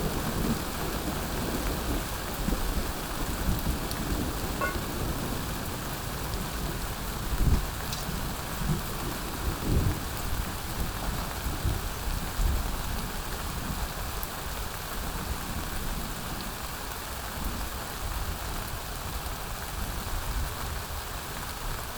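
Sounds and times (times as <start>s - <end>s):
summer thunderstorm: 0.0s - 21.8s.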